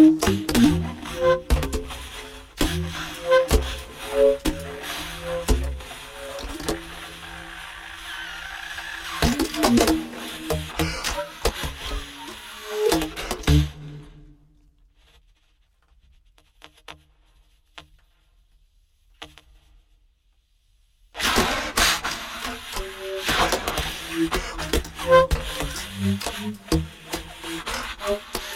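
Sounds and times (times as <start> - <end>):
stutter effect: 0.0 - 14.0, 21.2 - 28.5.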